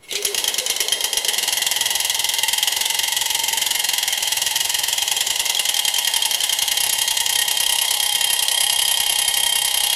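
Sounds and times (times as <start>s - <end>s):
old steampunk time machine: 0.0s - 9.9s.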